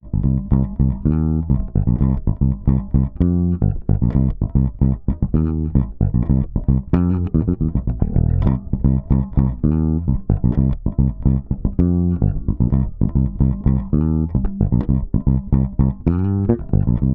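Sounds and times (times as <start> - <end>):
disco bass in C: 0.0 - 17.1.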